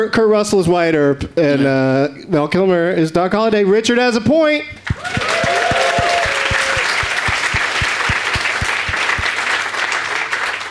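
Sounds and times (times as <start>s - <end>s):
speech: 0.0s - 5.8s
audience applause: 4.8s - 10.7s.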